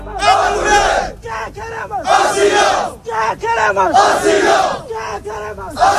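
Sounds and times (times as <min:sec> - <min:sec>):
hundreds of migrants chanting at a beach camp in Ceuta: 0:00.0 - 0:01.2, 0:02.0 - 0:03.0, 0:03.7 - 0:04.9, 0:05.7 - 0:05.9
migrants shouting: 0:00.0 - 0:05.9.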